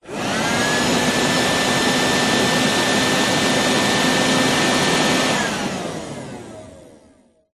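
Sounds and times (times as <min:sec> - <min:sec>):
small handheld vacuum burst switching off: 0:00.0 - 0:07.1.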